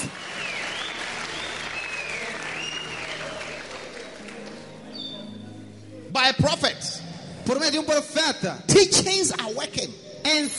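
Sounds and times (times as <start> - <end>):
audience applause: 0.0 - 4.6
speech: 6.2 - 6.9, 7.5 - 10.5.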